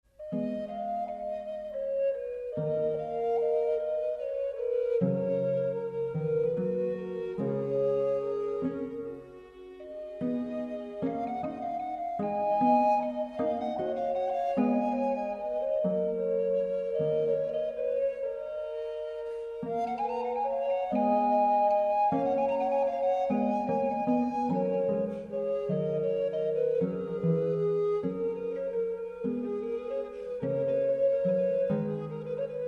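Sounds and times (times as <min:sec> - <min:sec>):
harp melody: 0:00.1 - 0:32.6.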